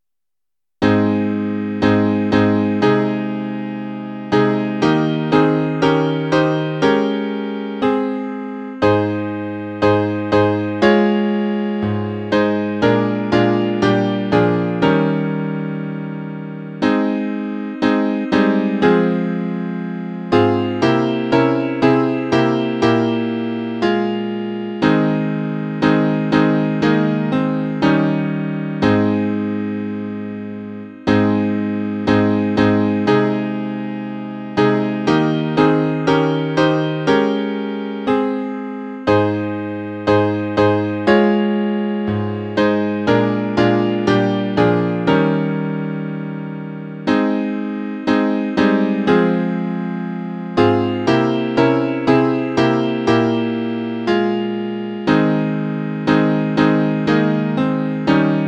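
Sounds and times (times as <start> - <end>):
piano: 0.8 - 58.4.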